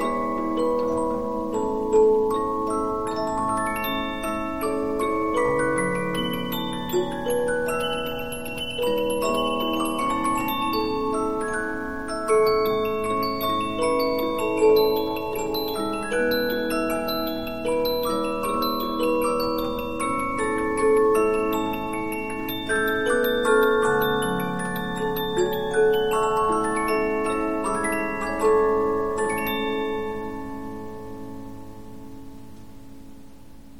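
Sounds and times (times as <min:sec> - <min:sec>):
15-inch disc music box: 0:00.0 - 0:32.9.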